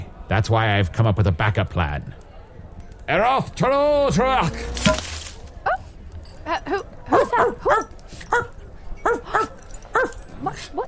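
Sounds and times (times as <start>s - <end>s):
faint noise: 0.0s - 10.8s
speech: 0.3s - 2.2s, 3.1s - 5.1s, 6.5s - 8.5s
dog barking in short sharp high yips: 7.1s - 10.6s.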